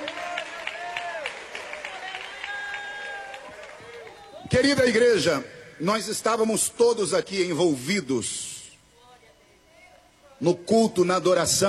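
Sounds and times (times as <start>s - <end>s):
church audience applauding: 0.0s - 4.5s
speech: 4.5s - 8.5s, 10.4s - 11.6s.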